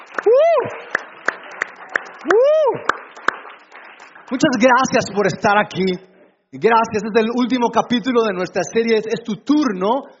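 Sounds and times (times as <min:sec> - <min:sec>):
audience clapping: 0:00.0 - 0:05.9
person whooping: 0:00.2 - 0:00.9, 0:02.2 - 0:03.0
speech: 0:04.3 - 0:10.1.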